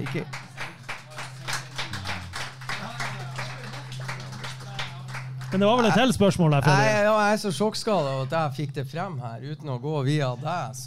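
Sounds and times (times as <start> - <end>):
speech: 0.0 - 0.4, 5.5 - 10.8
audience clapping: 0.0 - 6.2
low steady hum: 0.0 - 10.8.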